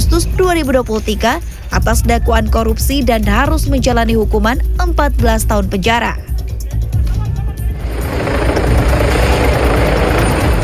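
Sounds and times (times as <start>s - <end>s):
speech: 0.1s - 6.4s
air ambulance helicopter landing in a city square: 7.6s - 10.6s.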